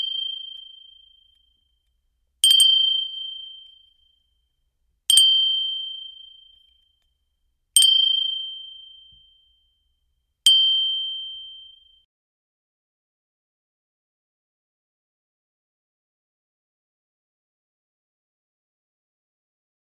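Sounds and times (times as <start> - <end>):
handbell: 2.4 - 3.9, 5.1 - 6.6, 7.8 - 9.6, 10.5 - 12.0.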